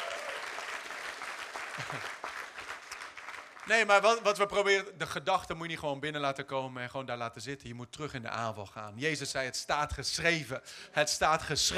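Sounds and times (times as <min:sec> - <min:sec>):
audience applause: 0:00.0 - 0:03.8
speech: 0:01.8 - 0:02.2, 0:03.7 - 0:11.7.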